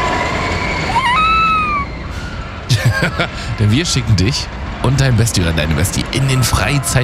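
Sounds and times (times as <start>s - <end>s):
roller coaster rumbling and rattling along its track: 0.0s - 7.0s
person screaming on a roller coaster: 0.9s - 1.9s
laughter: 2.7s - 4.1s, 6.2s - 7.0s
speech: 3.0s - 7.0s.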